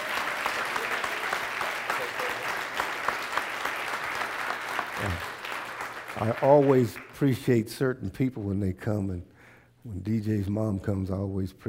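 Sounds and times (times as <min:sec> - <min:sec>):
audience hand clapping: 0:00.0 - 0:07.5
speech: 0:06.2 - 0:11.6.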